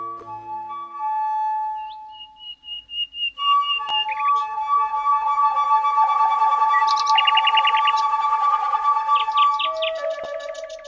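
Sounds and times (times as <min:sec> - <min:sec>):
flute music from a CD mimicking birdsong: 0:00.0 - 0:10.8.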